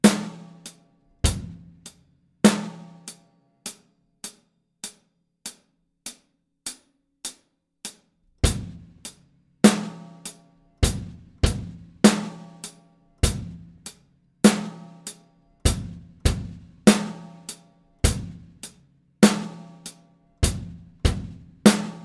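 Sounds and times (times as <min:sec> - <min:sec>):
drum solo: 0:00.0 - 0:03.2, 0:08.4 - 0:22.0.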